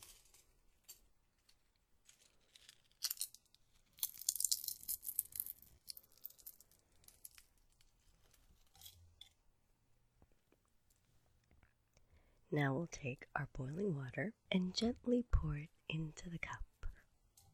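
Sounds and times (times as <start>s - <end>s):
fresh tea leaves torn by hand: 2.1s - 9.0s
speech: 12.5s - 16.7s.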